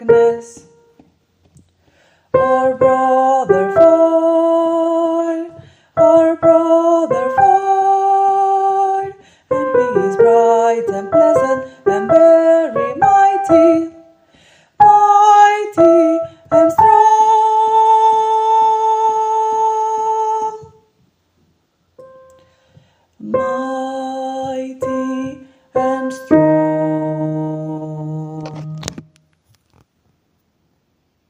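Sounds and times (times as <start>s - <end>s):
soprano singing: 0.0s - 0.8s, 2.3s - 14.2s, 14.8s - 20.9s, 23.2s - 29.0s.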